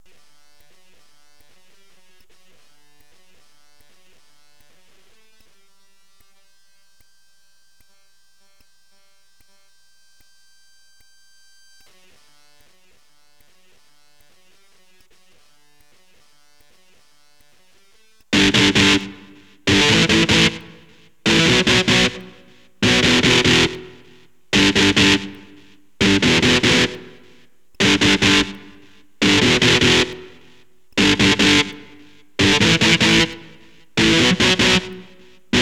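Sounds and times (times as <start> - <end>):
electric guitar power chord: 18.4 - 35.6.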